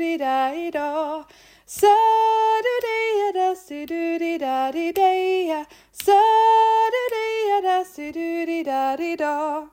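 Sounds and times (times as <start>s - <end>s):
soprano singing: 0.0s - 9.7s.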